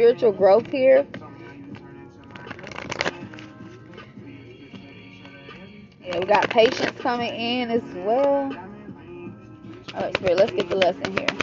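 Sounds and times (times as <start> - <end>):
speech: 0.0 - 1.2, 6.1 - 8.7, 10.0 - 11.4
oracle cards being shuffled by hand: 0.6 - 4.0, 6.1 - 7.3, 9.7 - 11.4.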